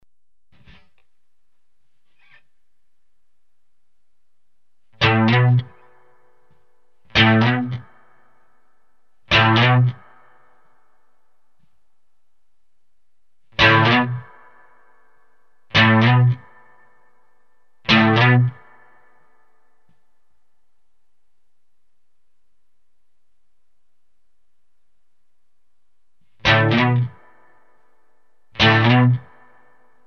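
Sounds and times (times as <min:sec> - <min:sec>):
electric guitar: 0:05.0 - 0:06.2, 0:07.1 - 0:08.0, 0:09.3 - 0:10.2, 0:13.6 - 0:14.9, 0:15.7 - 0:16.8, 0:17.9 - 0:18.9, 0:26.4 - 0:27.7, 0:28.6 - 0:29.8.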